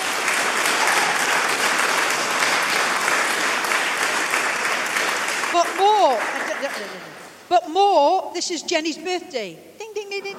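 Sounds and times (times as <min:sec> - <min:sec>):
audience clapping: 0:00.0 - 0:07.3
speech: 0:05.6 - 0:10.3.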